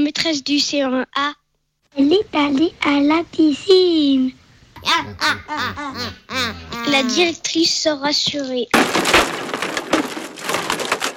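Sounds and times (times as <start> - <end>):
speech: 0.1 - 9.3
laughter: 4.8 - 7.2
wooden chair breaking: 8.8 - 11.1.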